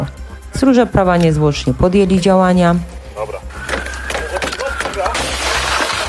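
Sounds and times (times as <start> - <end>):
speech: 0.0 - 3.3
car window glass being smashed: 3.8 - 6.0.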